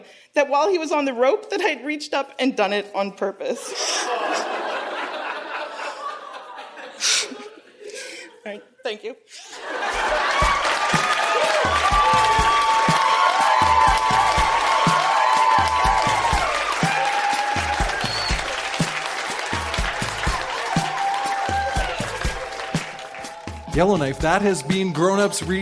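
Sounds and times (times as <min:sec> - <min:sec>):
speech: 0:00.0 - 0:04.6, 0:08.4 - 0:10.4, 0:23.8 - 0:25.6
laughter: 0:03.6 - 0:08.7, 0:09.4 - 0:12.8, 0:15.7 - 0:25.1
audience applause: 0:09.6 - 0:25.5.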